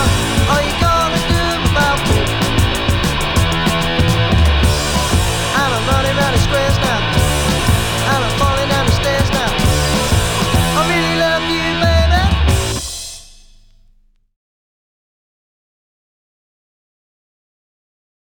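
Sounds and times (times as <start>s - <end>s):
groove music: 0.0s - 14.2s.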